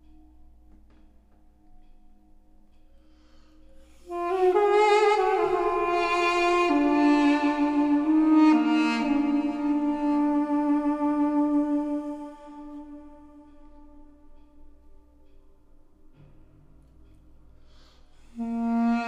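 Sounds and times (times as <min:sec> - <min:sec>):
melody: 0:01.6 - 0:15.3.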